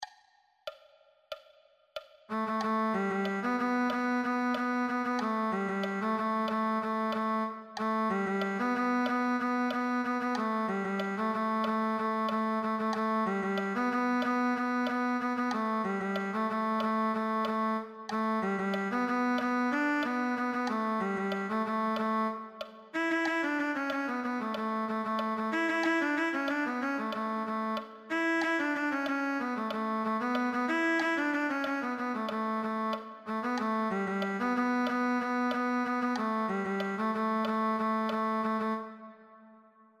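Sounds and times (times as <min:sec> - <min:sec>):
cello: 0:02.3 - 0:39.1.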